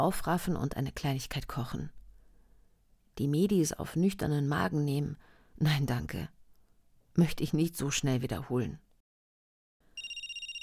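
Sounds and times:
speech: 0.0s - 2.0s, 3.2s - 6.4s, 7.2s - 8.8s
telephone ringing with electronic trill during outgoing call: 10.0s - 10.6s.

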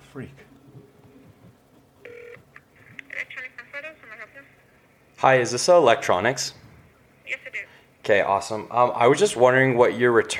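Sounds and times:
speech: 0.2s - 0.5s, 5.2s - 6.6s, 8.0s - 10.3s
phone keypad dialing tones: 2.0s - 2.4s.

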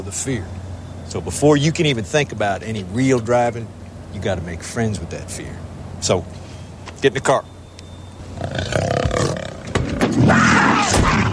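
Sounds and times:
speech: 0.0s - 6.4s, 7.0s - 7.5s
cougar roaring inside a car: 8.2s - 11.3s.

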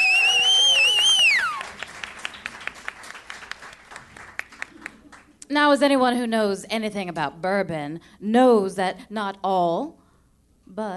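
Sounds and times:
shrill wavering whistle: 0.0s - 1.7s
audience applause for the bar staff: 0.0s - 5.3s
speech: 5.5s - 10.0s, 10.7s - 10.9s.

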